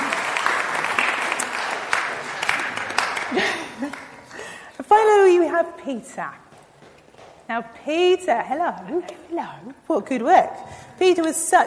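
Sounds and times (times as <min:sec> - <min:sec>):
audience applause: 0:00.0 - 0:04.6
speech: 0:03.3 - 0:04.0, 0:05.6 - 0:06.5, 0:07.5 - 0:11.6.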